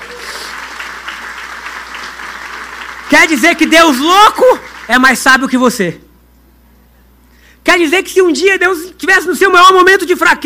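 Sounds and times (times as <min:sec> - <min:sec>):
crowd applause: 0:00.0 - 0:05.0
speech: 0:03.1 - 0:06.0, 0:07.7 - 0:10.4.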